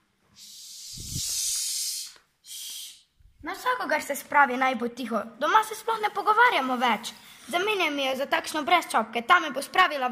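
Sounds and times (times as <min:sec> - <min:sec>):
loud breathy hiss: 0:00.4 - 0:03.2
speech: 0:03.4 - 0:10.0.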